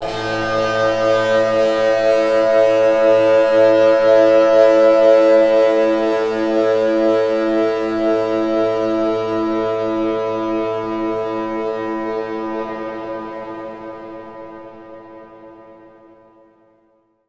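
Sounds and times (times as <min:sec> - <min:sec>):
distortion effect: 0:00.0 - 0:16.0.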